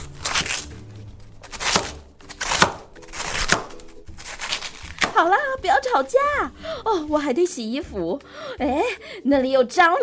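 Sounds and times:
chopping vegetables: 0.0s - 6.0s
speech: 5.2s - 10.0s.

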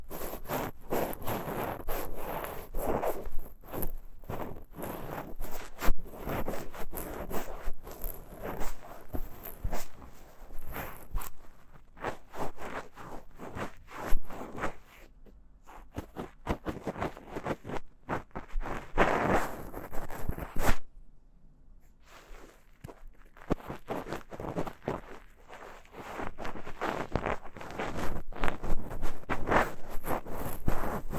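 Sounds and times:
ear cleaning with a pick, bonthen fluff and horsehair brush: 0.0s - 20.8s, 22.0s - 31.1s.

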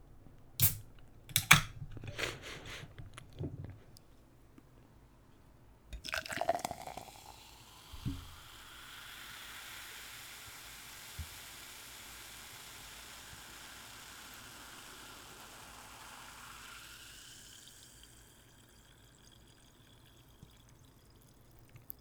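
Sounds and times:
handling clicks: 0.6s - 2.0s
fizzy hissing burst: 0.6s - 3.1s, 6.0s - 20.6s
fizzy drink bubbles crackling: 6.0s - 21.9s.

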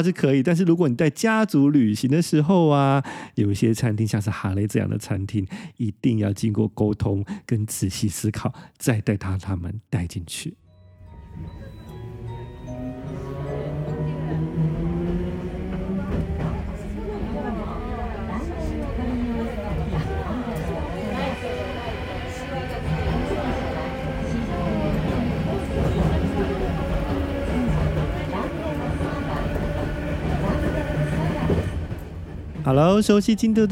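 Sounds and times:
recorded onboard tram announcement voice: 0.0s - 10.6s, 13.2s - 31.7s, 32.6s - 33.7s
speech: 0.0s - 10.6s, 32.7s - 33.7s
Kyoto Randen tram rumbling and rattling in motion: 11.3s - 33.7s.

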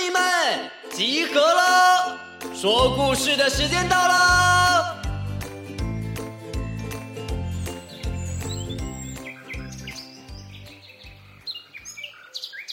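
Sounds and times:
rhythmic music with pulsing low notes and tinkling tones: 0.0s - 10.7s
speech: 0.5s - 4.6s
bright high bird chirps: 2.6s - 12.7s.

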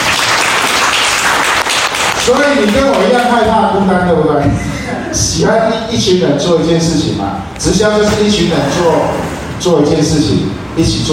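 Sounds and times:
audience applause: 0.0s - 3.2s
speech: 2.3s - 11.1s.

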